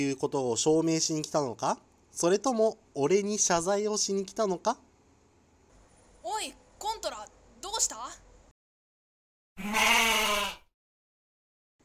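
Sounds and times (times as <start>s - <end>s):
speech: 0.0s - 4.9s, 6.3s - 8.2s, 9.6s - 10.1s
wavering bleating cry given as the call of an otter: 9.6s - 10.7s.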